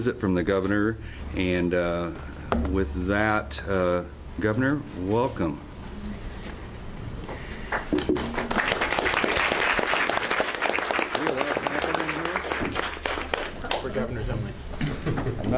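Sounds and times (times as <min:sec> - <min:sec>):
speech: 0:00.0 - 0:06.2, 0:14.2 - 0:15.5
audience applause and clapping: 0:07.7 - 0:13.9.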